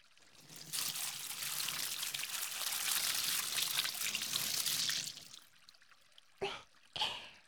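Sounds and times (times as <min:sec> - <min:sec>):
water poured for washing: 0:00.1 - 0:06.0.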